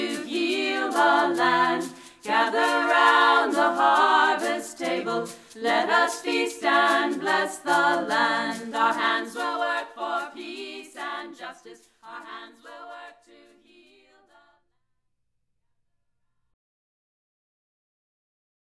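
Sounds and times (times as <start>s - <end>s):
chanting: 0.0s - 14.6s.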